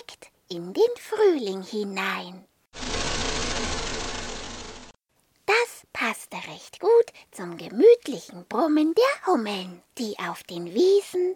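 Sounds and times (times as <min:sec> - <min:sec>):
speech: 0:00.5 - 0:02.5, 0:06.4 - 0:11.3
small vehicle motor purring along: 0:02.8 - 0:05.0.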